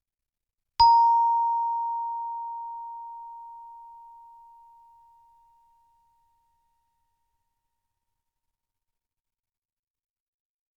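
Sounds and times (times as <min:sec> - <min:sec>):
chime bar B flat note: 0:00.8 - 0:05.6.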